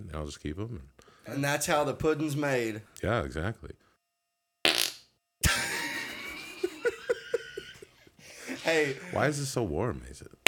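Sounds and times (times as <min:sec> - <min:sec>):
speech: 0:00.1 - 0:03.8, 0:08.7 - 0:10.4
fart: 0:04.7 - 0:05.1
laughter: 0:05.4 - 0:09.3.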